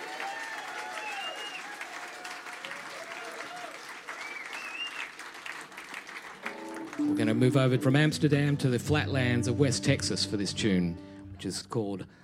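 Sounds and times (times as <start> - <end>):
audience applause welcoming a guest musician onto the stage: 0.0 - 7.8
speech: 7.0 - 12.2.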